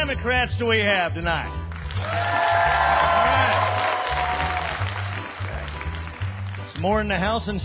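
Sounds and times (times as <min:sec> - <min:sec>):
speech: 0:00.1 - 0:03.8, 0:06.8 - 0:07.6
crowd applause: 0:01.7 - 0:06.8
scattered cheers and whoops: 0:02.0 - 0:05.0.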